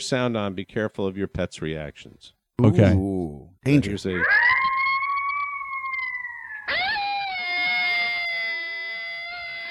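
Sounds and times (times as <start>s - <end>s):
speech: 0.0s - 4.6s
pack of coyotes howling: 4.1s - 9.6s.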